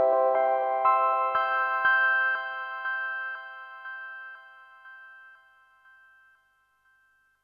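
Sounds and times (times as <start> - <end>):
ringtone: 0.1 - 7.4.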